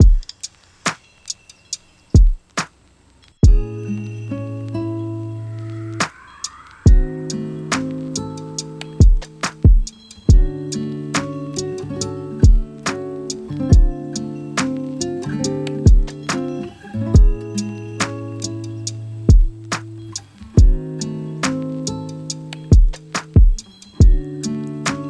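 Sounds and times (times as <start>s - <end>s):
lofi hip hop: 5.2s - 25.0s.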